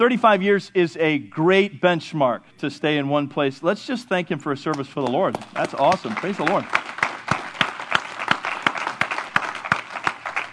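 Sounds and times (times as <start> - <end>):
speech: 0.0 - 6.8
audience clapping, some in time: 5.0 - 10.5.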